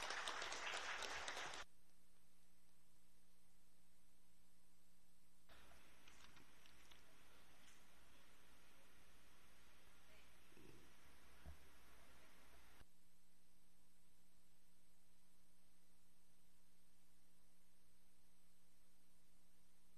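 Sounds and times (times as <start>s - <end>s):
applause for an athlete: 0.0s - 1.7s.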